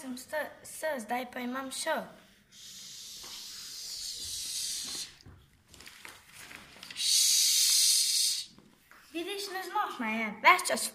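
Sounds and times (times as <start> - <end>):
speech: 0.0 - 2.7, 9.2 - 10.9
long steady hissing like a goose: 2.5 - 5.2, 7.0 - 8.6
soft rustling: 4.2 - 7.0.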